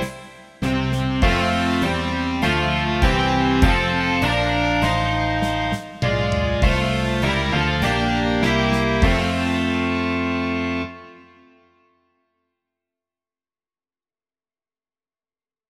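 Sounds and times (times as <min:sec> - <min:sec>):
rock music: 0:00.0 - 0:11.3.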